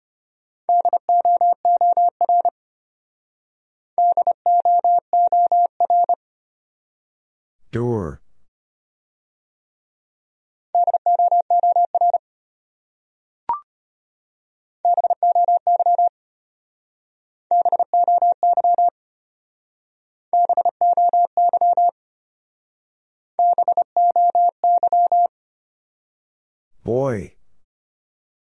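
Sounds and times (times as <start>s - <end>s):
Morse code beeps at 25 words per minute: 0.7s - 2.5s, 4.0s - 6.2s, 10.8s - 12.2s, 14.9s - 16.1s, 17.5s - 18.9s, 20.4s - 21.9s, 23.4s - 25.3s.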